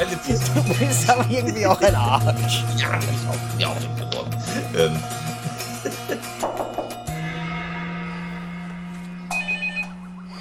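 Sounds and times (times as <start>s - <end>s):
laughter: 0.0s - 7.0s
speech: 0.1s - 6.6s
doorbell ringing: 6.6s - 10.4s.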